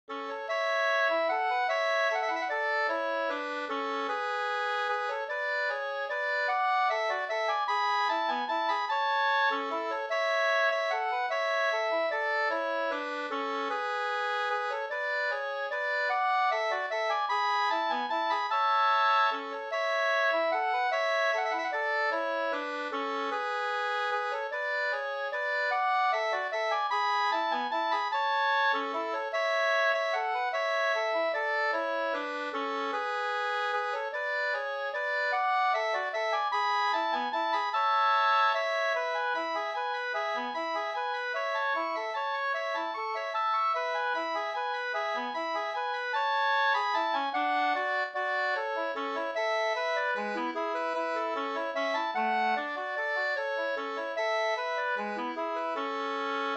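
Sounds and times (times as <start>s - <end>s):
waltz music: 0.1s - 56.5s.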